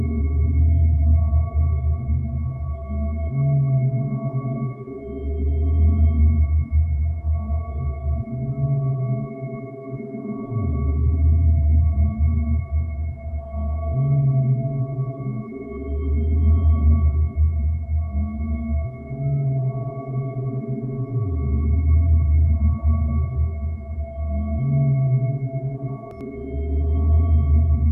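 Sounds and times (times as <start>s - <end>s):
dreamy ambient atmosphere: 0.0s - 27.9s.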